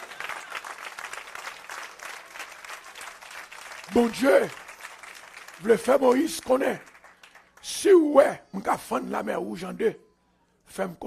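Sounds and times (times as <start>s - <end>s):
audience applause: 0.0s - 7.7s
speech: 3.9s - 4.6s, 5.6s - 6.9s, 7.6s - 10.0s, 10.7s - 11.0s.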